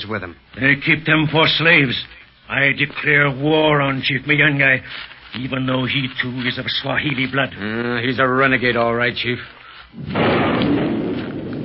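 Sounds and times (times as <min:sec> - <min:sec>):
speech: 0:00.0 - 0:10.9
thunder of an approaching storm: 0:10.0 - 0:11.6.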